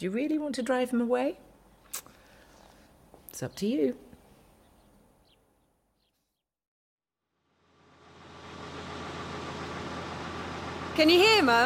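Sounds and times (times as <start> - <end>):
speech: 0.0 - 1.5, 3.3 - 4.1, 11.0 - 11.6
tractor engine rumble: 7.6 - 11.6.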